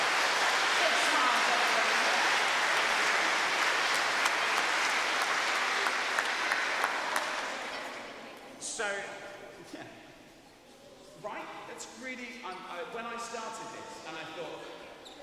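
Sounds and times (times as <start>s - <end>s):
audience applause: 0.0s - 8.0s
speech: 11.2s - 14.8s.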